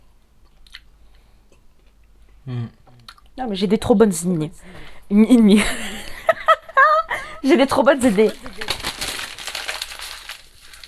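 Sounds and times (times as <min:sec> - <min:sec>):
speech: 0:03.4 - 0:05.9, 0:07.4 - 0:08.6
laughter: 0:05.5 - 0:07.4
chocolate wrapper paper crinkling: 0:07.4 - 0:10.8.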